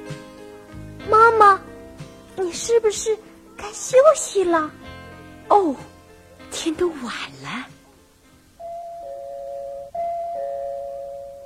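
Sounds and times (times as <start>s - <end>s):
speech: 1.2s - 1.7s, 2.4s - 4.9s, 5.5s - 5.9s, 6.6s - 7.7s
doorbell ringing: 8.6s - 11.4s.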